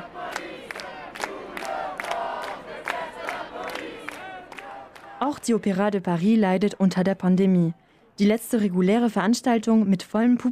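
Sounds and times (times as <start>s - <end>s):
large crowd chanting and shouting at a street demonstration: 0.0s - 7.8s
speech: 5.2s - 10.4s.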